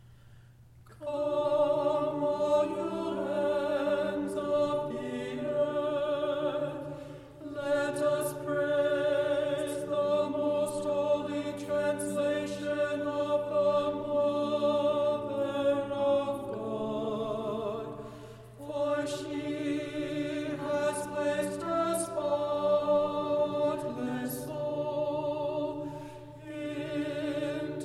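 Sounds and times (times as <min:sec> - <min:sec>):
tenor chanting Kievan sticheron in tone three: 0:00.9 - 0:27.8.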